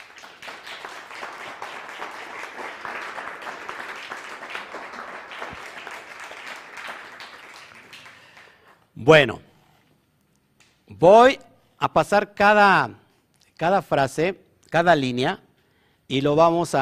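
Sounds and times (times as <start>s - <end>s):
audience applause: 0.0s - 8.8s
speech: 9.0s - 9.5s, 11.0s - 13.0s, 13.6s - 15.4s, 16.1s - 16.8s.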